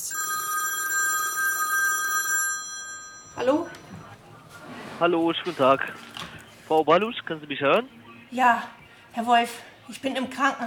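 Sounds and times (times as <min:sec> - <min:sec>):
telephone ringing: 0:00.0 - 0:04.2
speech: 0:03.4 - 0:04.1, 0:05.0 - 0:06.0, 0:06.7 - 0:10.6.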